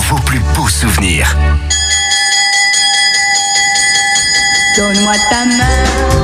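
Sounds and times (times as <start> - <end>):
speech: 0.1 - 1.8, 4.8 - 6.2
school bell ringing: 1.7 - 6.2.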